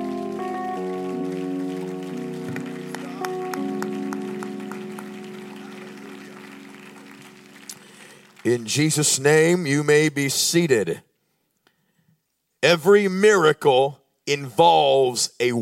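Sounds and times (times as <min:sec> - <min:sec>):
audience clapping hands: 0:00.0 - 0:09.9
speech: 0:08.5 - 0:11.1, 0:12.7 - 0:15.6.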